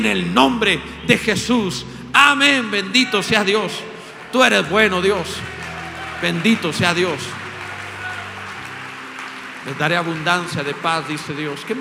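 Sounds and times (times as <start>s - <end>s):
speech: 0.0s - 5.6s, 6.2s - 7.4s, 9.6s - 11.7s
sustained low musical tones: 0.0s - 11.7s
audience applause: 3.2s - 11.7s.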